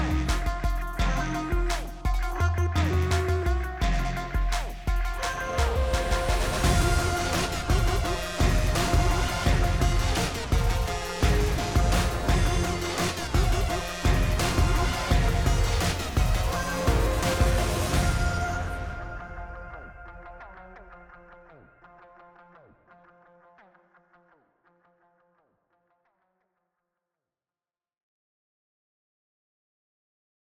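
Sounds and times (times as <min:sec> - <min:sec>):
music: 0:00.0 - 0:24.1.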